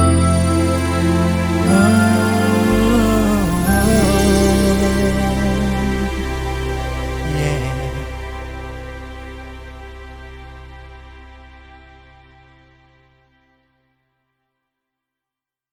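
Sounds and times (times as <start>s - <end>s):
pagode and samba music: 0.0s - 8.3s.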